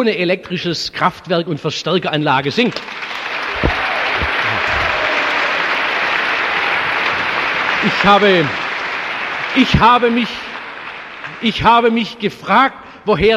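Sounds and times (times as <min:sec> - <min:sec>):
speech: 0:00.0 - 0:03.7, 0:07.8 - 0:08.6, 0:09.5 - 0:10.5, 0:11.4 - 0:13.3
audience applause for a youth choir: 0:02.7 - 0:12.1.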